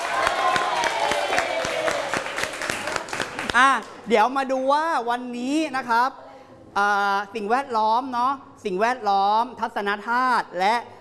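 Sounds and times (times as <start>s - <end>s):
audience applause: 0.0s - 3.6s
speech: 3.6s - 6.2s, 6.8s - 11.0s.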